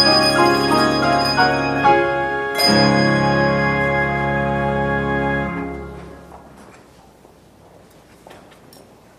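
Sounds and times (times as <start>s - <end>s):
bells: 0.0s - 4.8s
organ: 0.0s - 6.3s
piano: 0.0s - 6.8s.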